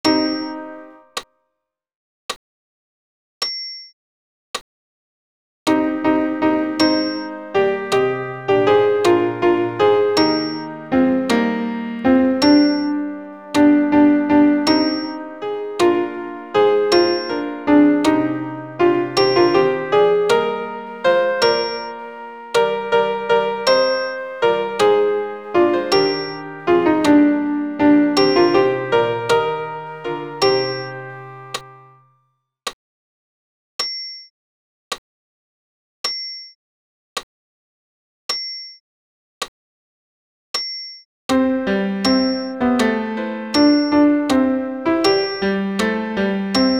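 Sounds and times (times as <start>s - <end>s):
alto piano accompaniment for a Credo: 0.0s - 1.2s, 5.7s - 32.0s, 41.3s - 46.7s.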